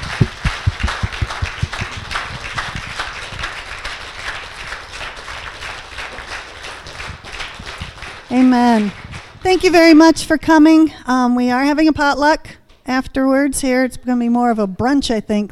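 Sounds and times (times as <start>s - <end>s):
audience applause: 0.0s - 9.4s
speech: 8.3s - 15.5s.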